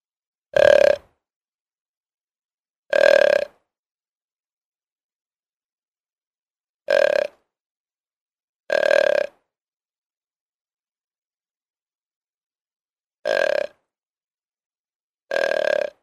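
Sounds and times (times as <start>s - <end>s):
deer bleating: 0.6s - 1.1s, 2.9s - 3.6s, 6.9s - 7.4s, 13.3s - 13.8s, 15.3s - 16.0s.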